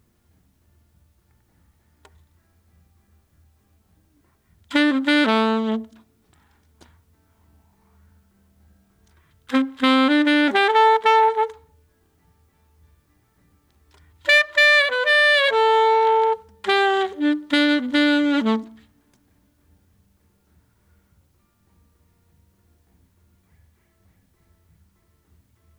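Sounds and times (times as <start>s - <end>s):
saxophone: 4.5s - 6.9s, 9.4s - 11.9s, 13.9s - 19.4s.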